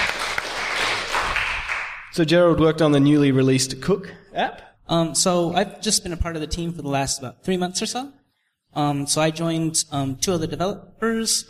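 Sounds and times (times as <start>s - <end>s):
audience clapping: 0.0s - 2.2s
speech: 2.2s - 11.4s.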